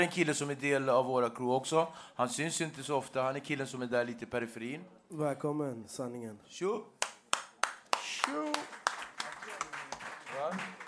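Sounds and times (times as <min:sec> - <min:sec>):
speech: 0:00.0 - 0:07.0, 0:08.2 - 0:08.8, 0:10.4 - 0:10.8
applause: 0:07.0 - 0:10.8.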